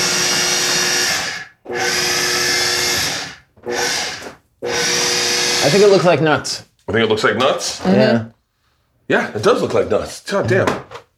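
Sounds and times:
blender pulsing food until it looks like chopped nuts: 0.0 - 6.0
speech: 5.6 - 8.4, 9.1 - 10.9.

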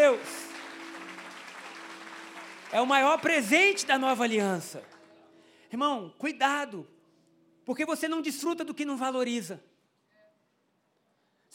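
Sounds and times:
audience applauding: 0.0 - 5.2
speech: 2.7 - 4.9, 5.7 - 7.0, 7.7 - 9.7.

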